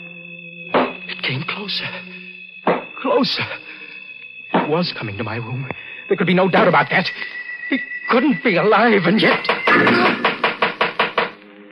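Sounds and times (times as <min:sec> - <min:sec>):
speech: 0:01.3 - 0:02.2, 0:03.0 - 0:03.8, 0:04.7 - 0:10.3
knocking on a door: 0:02.7 - 0:02.9, 0:09.3 - 0:11.4.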